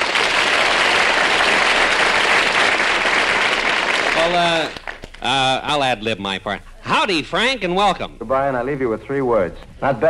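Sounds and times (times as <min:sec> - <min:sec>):
studio audience applause welcoming a guest: 0:00.0 - 0:05.5
speech: 0:04.3 - 0:10.0.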